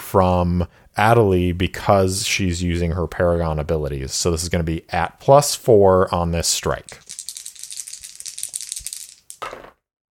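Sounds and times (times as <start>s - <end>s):
speech: 0.1s - 7.1s
dice rattling and clattering: 6.7s - 9.8s.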